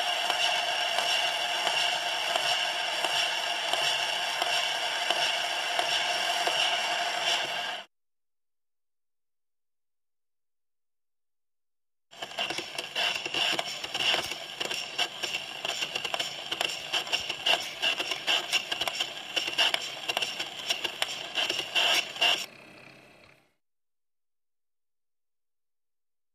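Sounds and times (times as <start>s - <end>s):
crank turning: 0.0s - 7.9s, 12.1s - 22.5s
needle on record: 0.0s - 7.9s, 12.1s - 22.5s.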